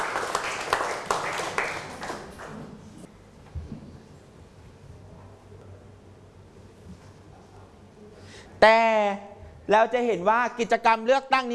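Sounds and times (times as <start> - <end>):
classroom small group clapping for a student: 0.0 - 2.9
speech: 8.6 - 11.5.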